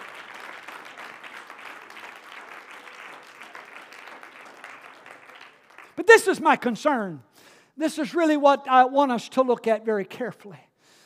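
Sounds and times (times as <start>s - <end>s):
audience clapping hands: 0.0s - 6.5s
speech: 6.0s - 10.7s.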